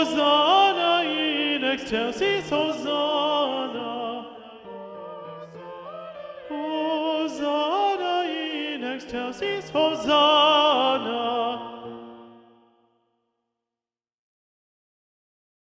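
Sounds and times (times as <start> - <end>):
tenor voice singing predominantly: 0.0 - 12.4.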